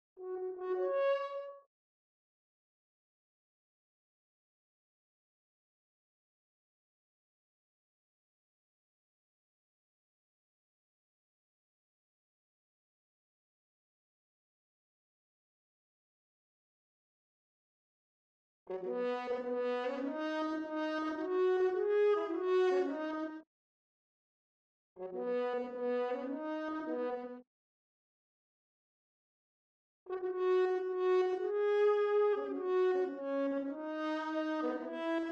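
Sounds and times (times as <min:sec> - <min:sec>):
horn: 0:00.2 - 0:01.6, 0:18.7 - 0:23.4, 0:25.0 - 0:27.4, 0:30.1 - 0:35.3.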